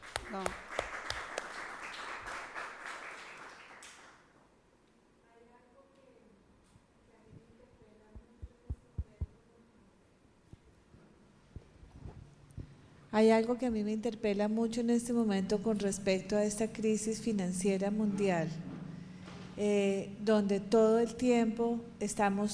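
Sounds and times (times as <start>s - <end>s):
speaker applauding the audience: 0.0s - 4.4s
speech: 0.3s - 0.6s, 13.2s - 18.6s, 19.6s - 22.5s.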